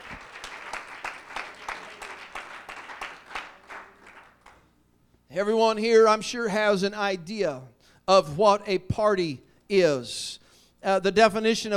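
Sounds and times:
audience hand clapping: 0.0s - 4.7s
speech: 5.4s - 11.7s.

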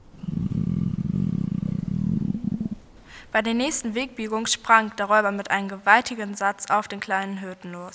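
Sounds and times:
loud stomach growling: 0.0s - 2.8s
speech: 3.3s - 7.9s.

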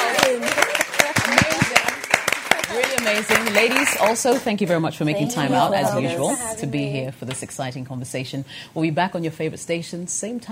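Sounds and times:
audience clapping at the end of a show: 0.0s - 4.8s
speech: 3.1s - 10.4s.

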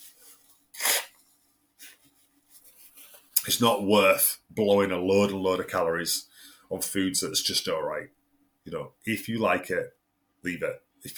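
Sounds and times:
person blowing nose: 0.7s - 1.2s
speech: 3.4s - 11.1s.

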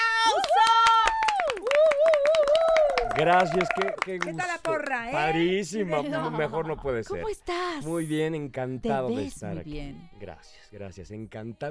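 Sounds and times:
audience clapping: 0.0s - 5.5s
speech: 3.2s - 11.6s
laughter: 5.8s - 7.0s.

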